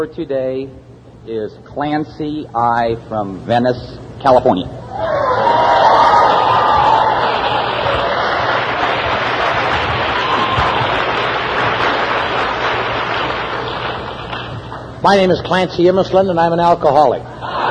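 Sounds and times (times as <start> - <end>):
speech: 0.0 - 5.5, 15.0 - 17.3
audience applause: 5.4 - 14.8.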